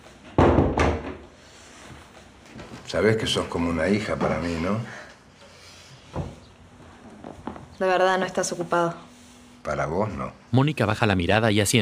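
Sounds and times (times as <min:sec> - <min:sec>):
door thudding shut: 0:00.4 - 0:01.2
speech: 0:02.9 - 0:05.0, 0:07.8 - 0:11.8.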